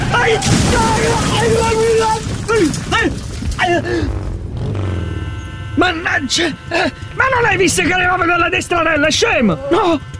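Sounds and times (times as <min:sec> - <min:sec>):
motorcycle crash: 0:00.0 - 0:05.9
speech: 0:00.3 - 0:04.2, 0:05.8 - 0:10.1
glass breaking: 0:00.4 - 0:03.7.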